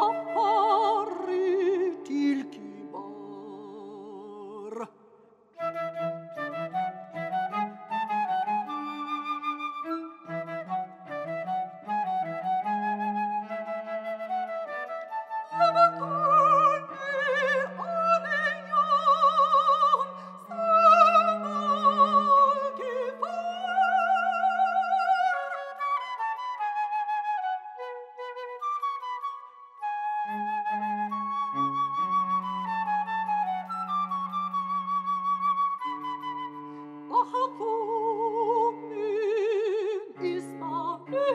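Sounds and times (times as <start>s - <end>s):
flute: 0.0s - 3.2s, 5.6s - 41.3s
cello: 0.0s - 4.9s, 5.6s - 41.3s
mezzo-soprano singing in Arabic: 0.0s - 4.9s, 15.4s - 25.8s, 37.1s - 41.3s.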